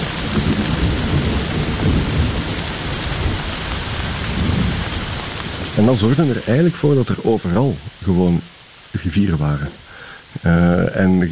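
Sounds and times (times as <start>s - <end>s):
thunder: 0.0s - 5.8s
heavy downpour: 0.0s - 11.2s
speech: 5.8s - 11.2s.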